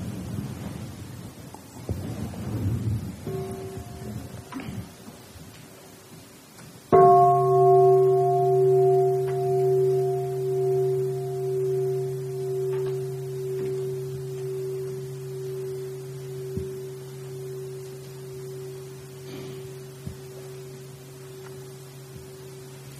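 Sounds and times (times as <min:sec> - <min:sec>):
Buddhist mindfulness bell being struck: 0:03.3 - 0:04.6, 0:06.9 - 0:22.9.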